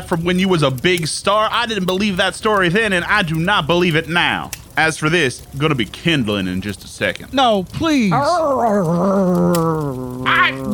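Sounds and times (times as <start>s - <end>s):
speech: 0.0s - 10.7s
dog growling: 8.1s - 10.7s.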